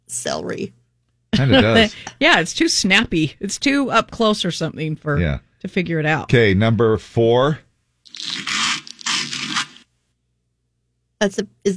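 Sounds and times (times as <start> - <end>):
speech: 0.1 - 0.8, 1.4 - 7.6, 11.2 - 11.7
butter spread on toast: 8.1 - 9.9.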